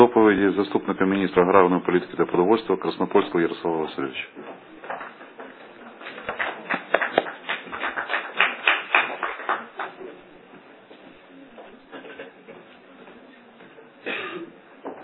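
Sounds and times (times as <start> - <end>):
speech: 0.0 - 4.6
applause: 4.9 - 10.2.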